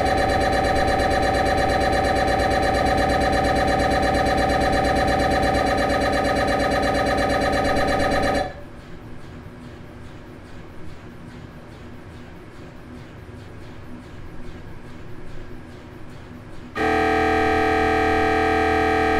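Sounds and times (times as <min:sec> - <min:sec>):
MRI tomography scanner: 0:00.0 - 0:08.8, 0:16.8 - 0:19.1.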